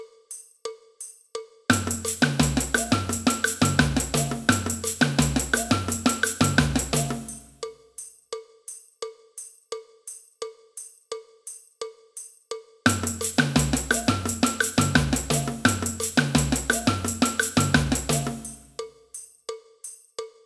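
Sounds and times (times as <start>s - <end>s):
cowbell: 0.3s - 20.4s
samba band: 1.7s - 7.6s, 12.9s - 18.8s.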